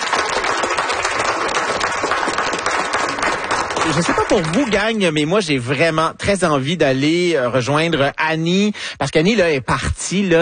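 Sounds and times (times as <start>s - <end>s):
audience applause: 0.0s - 4.9s
speech: 3.9s - 10.4s.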